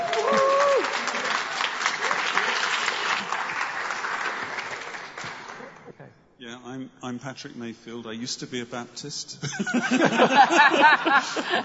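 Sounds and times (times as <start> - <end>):
audience applause: 0.0 - 5.9
speech: 7.0 - 11.6
laughter: 9.4 - 11.6.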